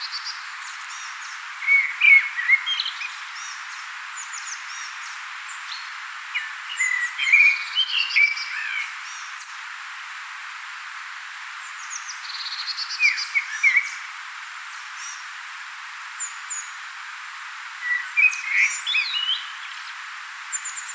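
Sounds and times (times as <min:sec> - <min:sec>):
common blackbird singing: 0:00.0 - 0:03.6, 0:05.6 - 0:09.4, 0:11.9 - 0:14.1, 0:17.8 - 0:20.9.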